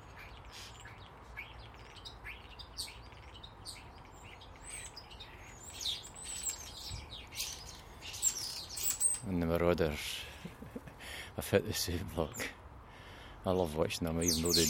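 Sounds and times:
bird chirping: 0.0s - 10.6s, 13.6s - 14.6s
hiss: 0.0s - 14.6s
speech: 9.5s - 10.2s, 11.4s - 12.6s, 13.4s - 14.6s.

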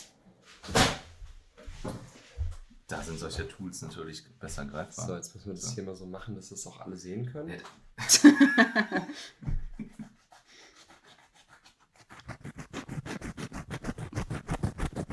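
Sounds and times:
speech: 2.9s - 9.6s
laughter: 8.0s - 10.1s
scratching coconut fibre fabric: 10.2s - 15.1s.

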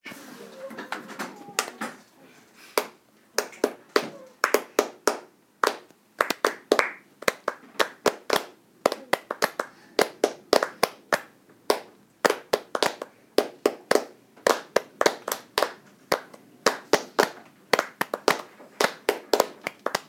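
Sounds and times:
clapping: 2.8s - 20.0s.

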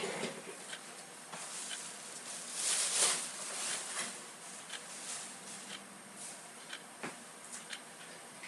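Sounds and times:
person cleaning room: 0.0s - 8.4s
clock ticking: 0.6s - 0.9s, 4.6s - 4.9s, 6.6s - 6.9s, 7.6s - 7.9s.

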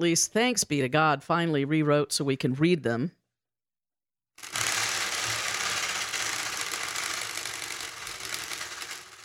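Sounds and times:
speech: 0.0s - 3.2s
strips of paper whapping against spokes of a spinning bicycle wheel: 4.4s - 9.2s.

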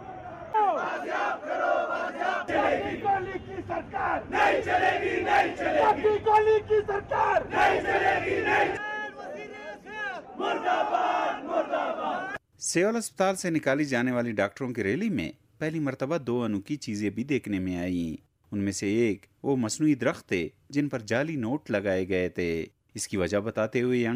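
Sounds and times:
crowd chanting slogans at a doctors' protest rally in Quetta: 0.0s - 12.4s
speech: 2.4s - 8.8s, 11.8s - 24.1s.

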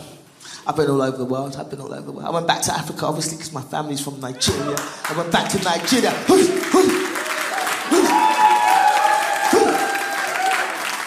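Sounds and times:
speech: 0.7s - 7.0s
audience applause: 4.6s - 11.0s.

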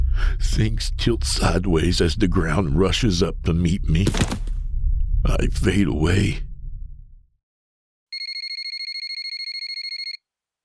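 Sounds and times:
speech: 0.4s - 4.5s, 5.2s - 6.5s
phone ringing: 8.2s - 10.2s.

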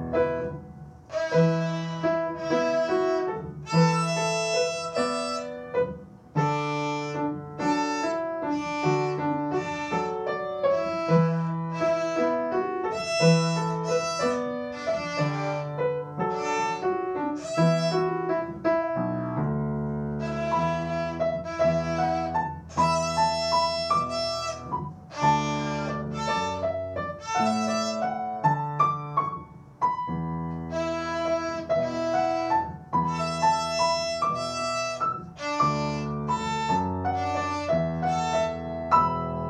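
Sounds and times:
violin playing a jig: 0.1s - 19.2s, 20.0s - 29.4s, 30.5s - 39.4s.

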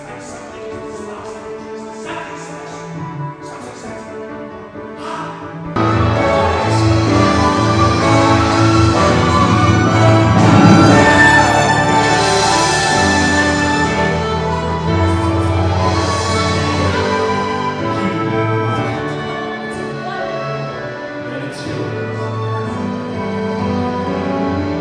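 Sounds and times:
band call: 5.8s - 24.7s.

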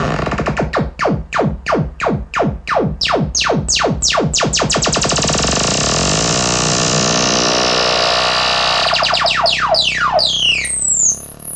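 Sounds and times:
Monotron synthesizer: 0.2s - 11.5s.

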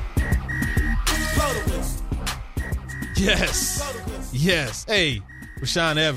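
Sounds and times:
thumping rhythmic music bed: 0.0s - 6.1s
shrill whistle blasts: 0.2s - 1.7s, 2.6s - 4.0s, 5.2s - 6.1s
speech: 3.2s - 6.1s.

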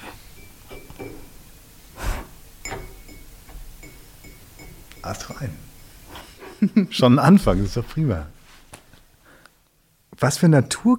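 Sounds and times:
fingernails tapping on a cup: 2.7s - 5.6s
speech: 5.0s - 5.8s, 6.6s - 8.4s, 10.2s - 10.9s.

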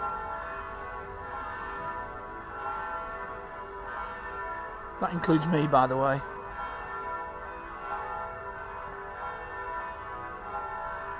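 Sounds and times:
bells of Sacred Heart Church ringing: 0.0s - 11.1s
speech: 5.0s - 6.3s.

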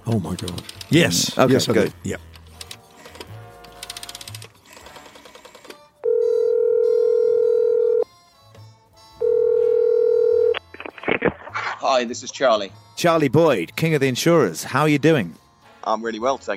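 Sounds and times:
speech: 0.1s - 2.3s, 12.0s - 16.5s
telephone ringing tones: 6.0s - 8.0s, 9.2s - 10.7s.

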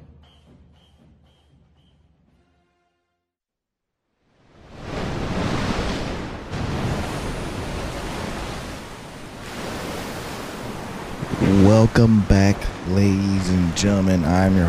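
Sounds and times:
storm wind: 4.2s - 14.6s
speech: 11.7s - 14.6s.

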